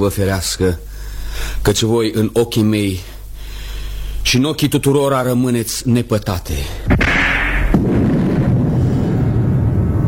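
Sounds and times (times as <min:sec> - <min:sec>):
speech: 0:00.0 - 0:03.2, 0:04.2 - 0:07.0
thunder clap and rolling rumble: 0:06.9 - 0:10.0.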